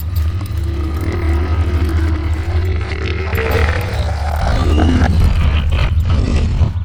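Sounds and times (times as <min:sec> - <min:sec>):
ice giant moving: 0:00.0 - 0:06.8.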